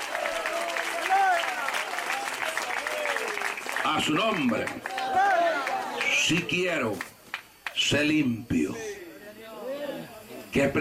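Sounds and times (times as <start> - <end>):
audience applause: 0.0 - 7.8
speech: 3.9 - 5.4, 6.3 - 7.1, 7.8 - 8.8, 10.5 - 10.7.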